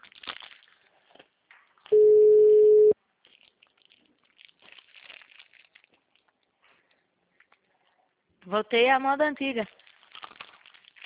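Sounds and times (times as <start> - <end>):
ringback tone from an unanswered phone call: 1.9 - 3.0
speech: 8.5 - 9.8.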